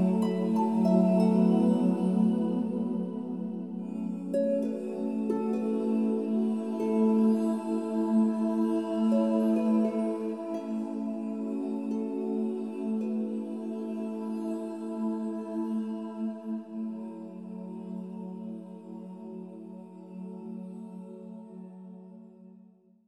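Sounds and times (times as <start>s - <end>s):
Celtic harp music: 0.0s - 15.7s.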